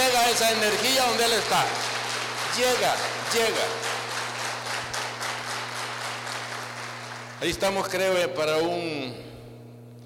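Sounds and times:
crowd applauding: 0.0s - 8.0s
low steady hum: 0.0s - 10.0s
speech: 0.3s - 2.0s, 2.6s - 3.9s, 7.4s - 9.3s.

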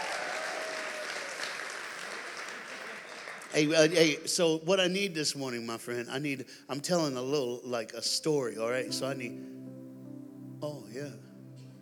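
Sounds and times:
audience clapping for keyboard player: 0.0s - 4.1s
speech: 3.5s - 9.6s, 10.6s - 11.3s.

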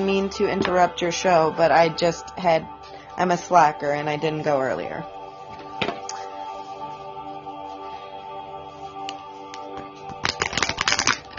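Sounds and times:
speech: 0.0s - 5.2s
shuffling a deck of cards: 10.1s - 11.3s.

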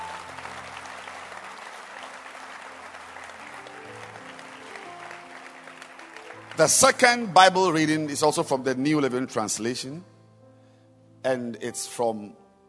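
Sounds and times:
audience hand clapping: 0.0s - 8.0s
speech: 6.6s - 10.1s, 11.2s - 12.6s.

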